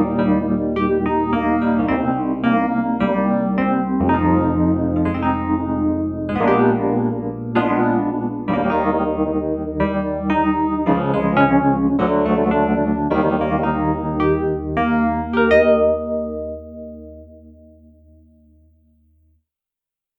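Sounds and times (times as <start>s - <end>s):
Wurlitzer electric piano with vibrato and chaos phaser: 0.0s - 18.9s.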